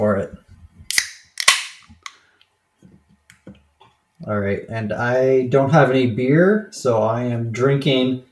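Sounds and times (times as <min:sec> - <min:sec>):
speech: 0:00.0 - 0:00.4, 0:04.3 - 0:08.3
bottle of Bullet Frontier bourbon whiskey being opened: 0:00.9 - 0:02.1.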